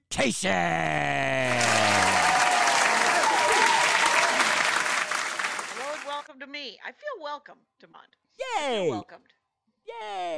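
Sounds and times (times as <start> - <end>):
speech: 0.2 - 1.9, 7.3 - 10.3
audience clapping and cheering for a stand-up comedian: 1.4 - 6.3.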